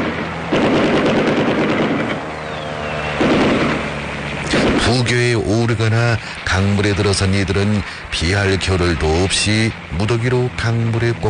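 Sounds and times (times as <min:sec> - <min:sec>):
aircraft strafing machine-gun fire: 0:00.0 - 0:02.2, 0:03.1 - 0:05.3
low aircraft engine drone: 0:00.0 - 0:11.2
speech: 0:04.9 - 0:11.2.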